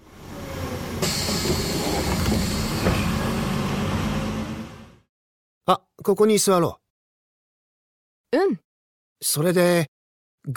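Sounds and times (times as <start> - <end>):
bus arriving: 0.0 - 5.1
speech: 1.0 - 1.6, 5.7 - 6.8, 8.3 - 8.6, 9.2 - 10.5.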